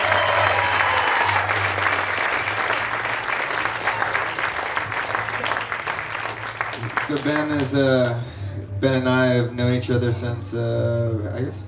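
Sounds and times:
audience applause: 0.0s - 8.3s
speech: 7.1s - 11.6s.

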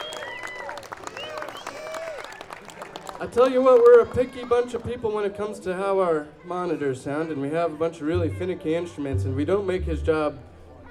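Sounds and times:
audience applause for the sound engineer: 0.0s - 4.8s
speech: 3.2s - 10.5s.

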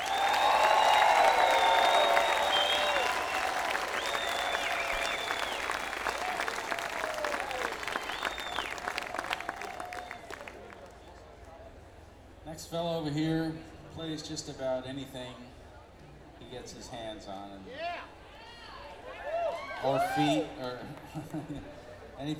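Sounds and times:
concert crowd applauding and cheering as the upright bass player is introduced: 0.0s - 11.2s
speech: 13.1s - 15.5s, 16.5s - 18.1s, 19.8s - 22.3s.

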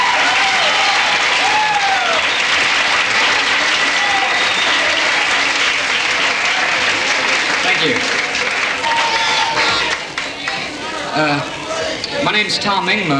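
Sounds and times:
whoops: 0.0s - 2.7s, 8.8s - 10.0s
audience applause welcoming a rock-and-roll performer: 0.0s - 13.1s
speech: 12.4s - 13.1s.

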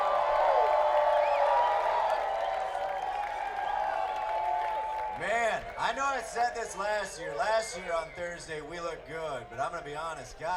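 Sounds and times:
audience whistles and whoops: 0.0s - 5.2s
audience clapping: 0.0s - 6.0s
speech: 5.9s - 10.5s.

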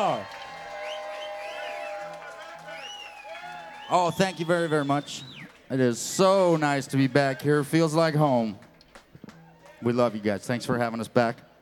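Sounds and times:
speech: 0.0s - 0.4s, 3.9s - 8.7s, 9.8s - 11.5s
audience applause: 0.0s - 6.4s
crowd cheering: 0.0s - 10.6s
high whoops and sliding whistles: 0.2s - 5.5s.

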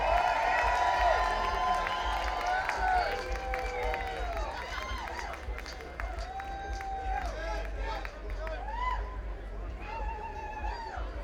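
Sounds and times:
shrill whistles and whoops: 0.0s - 7.3s
crowd applauding: 0.0s - 11.0s.

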